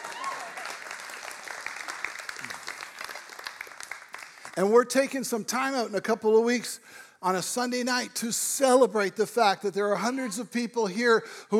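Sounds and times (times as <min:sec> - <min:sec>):
audience clapping: 0:00.0 - 0:05.1
speech: 0:04.6 - 0:11.5.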